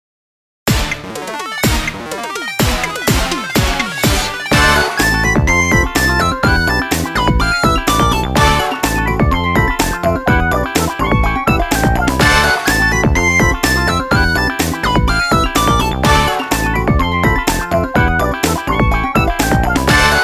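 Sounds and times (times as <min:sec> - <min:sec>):
chicken intro music: 0:00.7 - 0:20.2.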